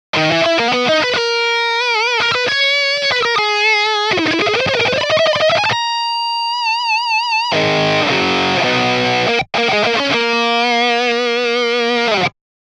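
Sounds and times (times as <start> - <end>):
lead solo: 0.2 - 12.3.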